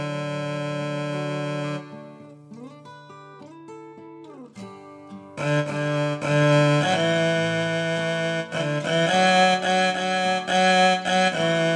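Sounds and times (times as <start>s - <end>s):
instrumental viola playing: 0.0s - 2.4s, 5.4s - 11.7s.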